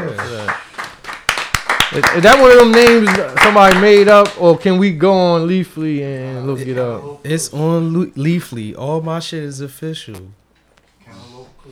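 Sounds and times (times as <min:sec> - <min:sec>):
hand clapping: 0:00.0 - 0:04.5
speech: 0:01.9 - 0:10.4.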